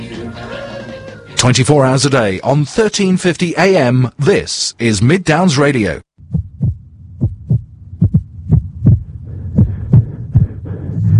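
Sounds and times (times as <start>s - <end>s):
speech: 1.4s - 6.1s
irregular heartbeat: 6.2s - 11.1s
low steady hum: 6.2s - 11.1s.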